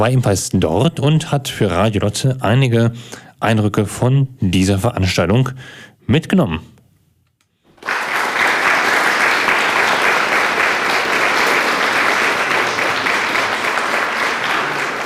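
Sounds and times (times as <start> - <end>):
speech: 0.0 - 6.7
audience applause: 7.7 - 15.0.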